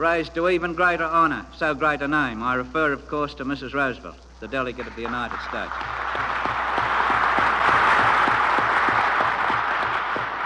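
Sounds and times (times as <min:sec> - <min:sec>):
speech: 0:00.0 - 0:06.3
assembly delegates applauding: 0:04.6 - 0:10.4.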